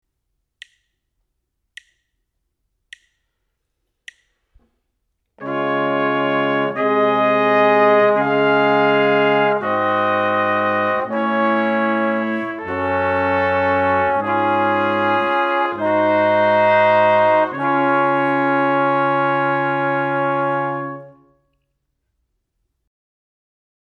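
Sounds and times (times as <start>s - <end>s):
brass quartet: 5.4s - 21.4s.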